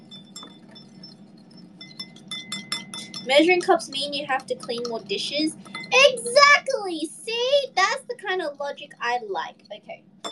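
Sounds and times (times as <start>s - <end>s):
small whisk clinking in a bowl: 0.0s - 6.5s
low steady hum: 0.0s - 10.3s
speech: 3.2s - 10.1s.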